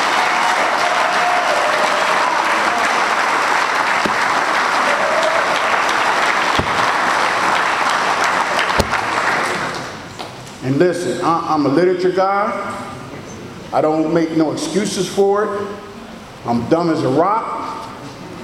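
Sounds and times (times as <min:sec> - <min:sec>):
audience applause: 0:00.0 - 0:10.1
speech: 0:10.8 - 0:12.8, 0:13.7 - 0:17.6.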